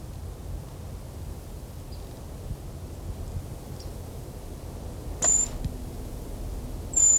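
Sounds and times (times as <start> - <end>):
wind: 0.0 - 7.1
Brown creeper giving thin high-pitched whistled calls: 5.2 - 5.6, 7.0 - 7.1.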